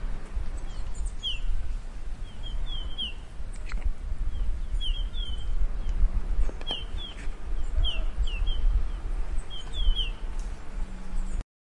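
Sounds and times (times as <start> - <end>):
background hiss: 0.0 - 11.4
red-headed bullfinch calls: 0.6 - 1.6, 2.2 - 3.3, 4.3 - 5.9, 6.6 - 10.2.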